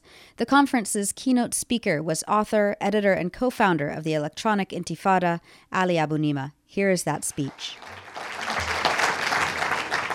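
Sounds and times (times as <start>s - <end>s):
speech: 0.4s - 8.0s
conference audience applause welcoming a keynote speaker: 7.4s - 10.1s.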